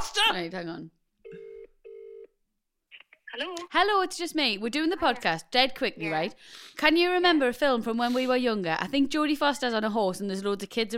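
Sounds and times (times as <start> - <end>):
speech: 0.3 - 1.4, 3.4 - 10.9
ringback tone of an outgoing phone call: 1.3 - 2.3.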